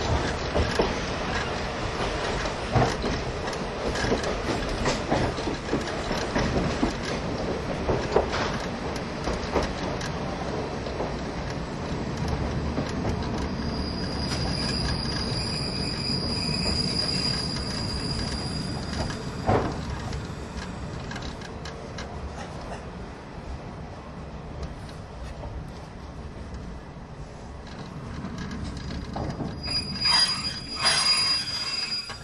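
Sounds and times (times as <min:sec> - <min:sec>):
old-style passenger train hauled by an E10 locomotive rumbling: 0:00.0 - 0:32.2
high thin squeal: 0:13.6 - 0:19.0, 0:29.6 - 0:32.2.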